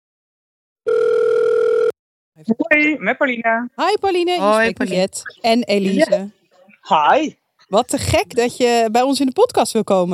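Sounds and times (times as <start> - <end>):
single ringback tone from an outgoing phone call: 0.9 - 1.9
speech: 2.4 - 10.1.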